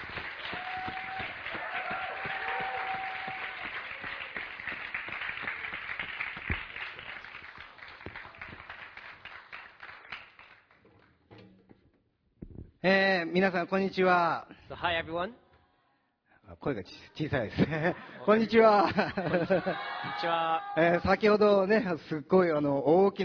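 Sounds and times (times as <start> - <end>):
crowd applause: 0.0 - 10.8, 18.1 - 20.4
speech: 12.8 - 15.4, 16.6 - 23.2
laughter: 17.4 - 20.3.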